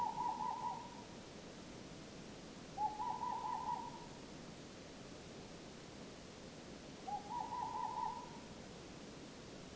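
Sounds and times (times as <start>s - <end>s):
Tengmalm's owl calling in Aspe: 0.0s - 1.0s, 2.8s - 4.2s, 7.1s - 8.5s.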